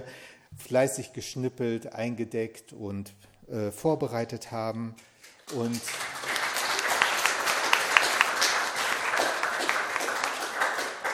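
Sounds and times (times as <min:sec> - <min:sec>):
speech: 0:00.1 - 0:06.0
audience clapping at a church service: 0:05.2 - 0:11.1.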